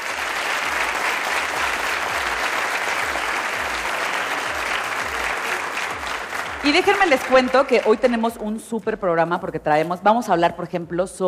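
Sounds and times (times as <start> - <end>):
audience applause: 0.0 - 8.2
speech: 6.6 - 11.2.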